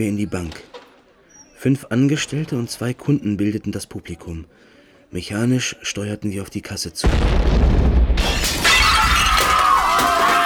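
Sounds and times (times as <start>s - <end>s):
speech: 0.0s - 0.7s, 1.6s - 7.8s
explosion boom: 7.0s - 9.2s
glass shattering: 8.2s - 10.4s.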